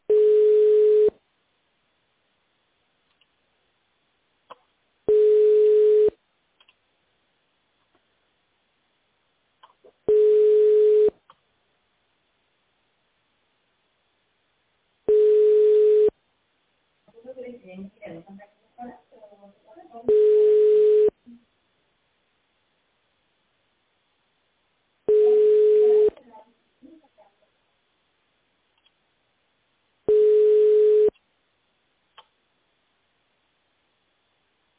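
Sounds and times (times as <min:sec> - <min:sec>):
telephone busy signal beeps: 0:00.1 - 0:01.1, 0:05.1 - 0:06.2, 0:10.1 - 0:11.2, 0:15.1 - 0:16.1, 0:20.1 - 0:21.1, 0:25.1 - 0:26.2, 0:30.1 - 0:31.1.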